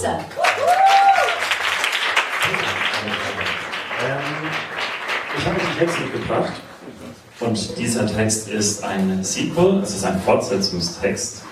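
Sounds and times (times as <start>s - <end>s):
speech: 0.0s - 0.8s, 5.4s - 11.5s
audience applause: 0.2s - 6.8s
voices whooping: 0.4s - 1.4s.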